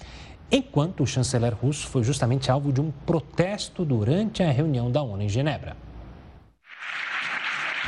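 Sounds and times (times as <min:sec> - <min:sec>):
speech: 0:00.5 - 0:05.9
standing ovation applause in parliament: 0:06.8 - 0:07.8.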